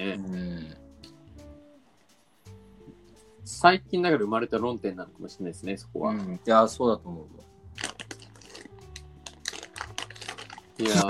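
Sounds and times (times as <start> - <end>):
speech: 0.0 - 0.8, 3.5 - 7.5, 10.8 - 11.0
person chewing a crisp snack: 7.8 - 11.0.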